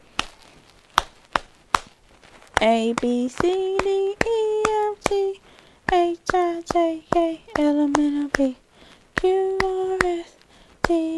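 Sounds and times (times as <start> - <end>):
sharp crisp hand claps: 1.0 - 1.9, 2.6 - 5.3, 5.9 - 8.6, 9.2 - 10.2, 10.8 - 11.1
speech: 2.6 - 4.4, 5.1 - 8.6, 9.2 - 10.3, 10.9 - 11.1.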